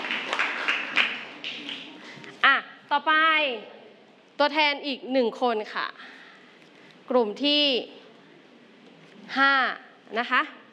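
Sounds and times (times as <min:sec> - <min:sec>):
scattered hand claps in a classroom for a student group: 0:00.0 - 0:02.1
speech: 0:02.4 - 0:03.8, 0:04.4 - 0:06.0, 0:07.1 - 0:08.0, 0:09.3 - 0:10.6.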